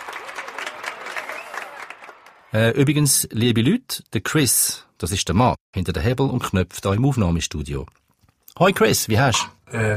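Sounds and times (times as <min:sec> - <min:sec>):
canned crowd cheering: 0:00.0 - 0:02.8
speech: 0:02.5 - 0:08.0, 0:08.6 - 0:09.9.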